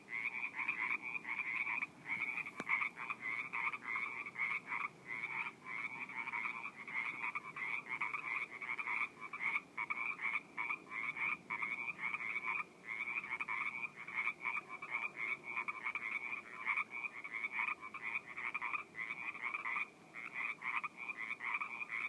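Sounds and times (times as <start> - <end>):
frogs calling in a dense chorus in a pond in Orinda California: 0.0 - 22.0.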